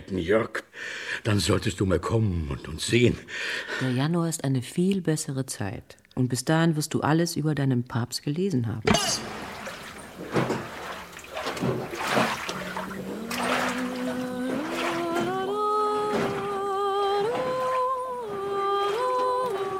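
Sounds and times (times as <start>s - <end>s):
speech: 0.1s - 9.5s
lake water rippling as a radio play sound effect: 8.9s - 19.7s.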